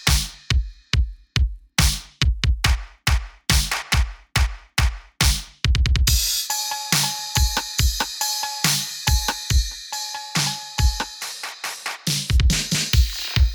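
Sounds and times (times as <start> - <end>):
rich drum beats: 0.0 - 13.5.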